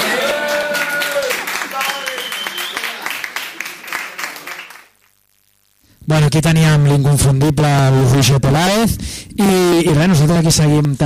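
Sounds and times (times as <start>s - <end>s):
audience applause: 0.0s - 5.0s
speech: 6.1s - 11.0s.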